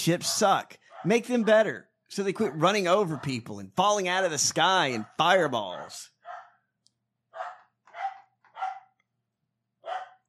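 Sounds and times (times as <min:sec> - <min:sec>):
speech: 0:00.0 - 0:06.1
dog barking at the door: 0:00.3 - 0:01.7, 0:02.4 - 0:03.6, 0:05.0 - 0:06.6, 0:07.3 - 0:09.0, 0:09.8 - 0:10.2.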